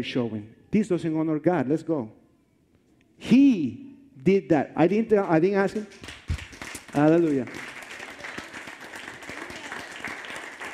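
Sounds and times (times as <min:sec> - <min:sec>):
speech: 0:00.0 - 0:02.2, 0:03.2 - 0:06.2, 0:06.9 - 0:07.7
audience applause: 0:06.0 - 0:10.7.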